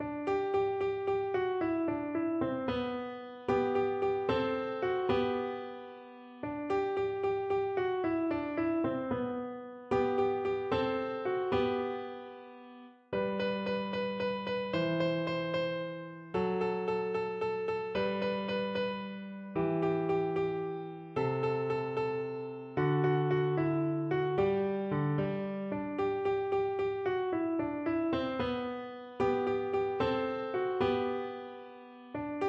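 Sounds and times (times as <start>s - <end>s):
easy piano: 0.0s - 32.4s.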